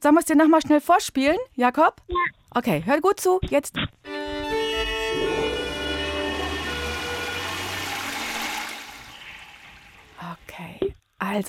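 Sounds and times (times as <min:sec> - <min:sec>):
speech: 0:00.0 - 0:04.4, 0:10.6 - 0:11.4
toilet flushing: 0:04.9 - 0:10.5.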